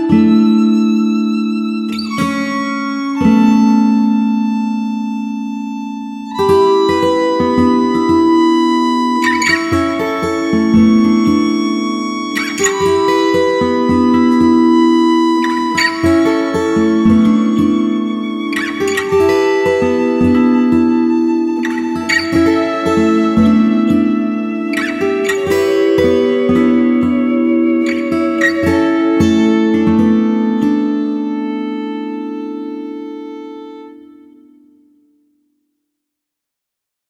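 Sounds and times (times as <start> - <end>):
tension guitar in A: 0.0 - 34.2.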